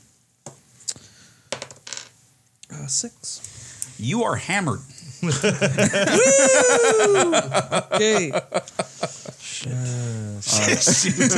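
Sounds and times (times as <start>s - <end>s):
dice rolled across a hard surface: 1.5s - 2.2s
speech: 2.9s - 11.3s
laughter: 5.0s - 9.7s, 10.4s - 11.3s.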